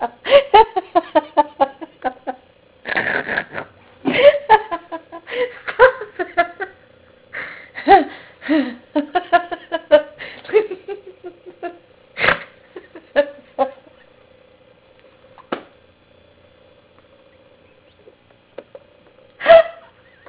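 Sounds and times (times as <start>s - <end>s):
person laughing: 0.0s - 6.8s, 7.4s - 14.1s, 18.6s - 20.2s.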